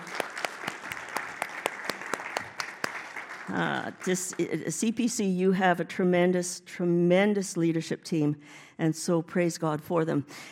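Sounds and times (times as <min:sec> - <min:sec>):
audience clapping: 0:00.0 - 0:04.6
speech: 0:03.5 - 0:10.5.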